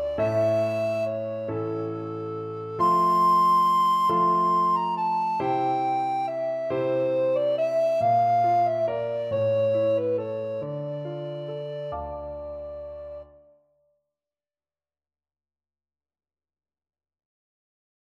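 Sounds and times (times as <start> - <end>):
alto recorder melody: 0.0 - 13.6.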